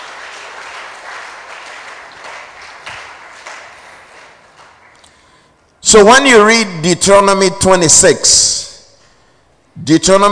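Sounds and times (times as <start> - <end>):
audience clapping: 0.0 - 5.5
speech: 5.9 - 8.6, 9.8 - 10.3.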